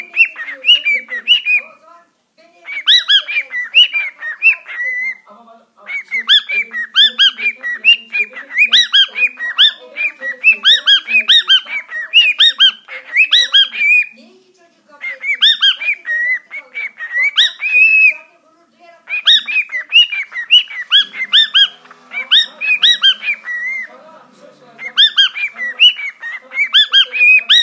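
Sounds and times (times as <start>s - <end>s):
sultan parrot: 0.0s - 1.8s, 2.6s - 14.2s, 15.0s - 18.4s, 19.0s - 27.6s.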